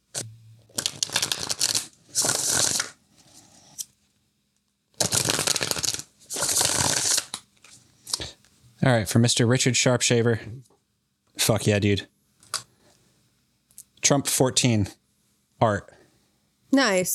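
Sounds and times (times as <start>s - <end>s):
tarot cards being shuffled: 0.2s - 3.0s, 5.0s - 8.2s
speech: 8.8s - 10.7s, 11.5s - 12.1s, 14.1s - 15.0s, 15.6s - 15.9s, 16.7s - 17.1s.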